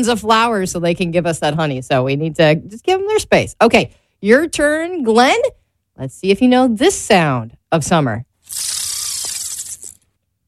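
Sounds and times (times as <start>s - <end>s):
speech: 0.0s - 8.8s
fishing line being cast from reel: 8.4s - 10.0s.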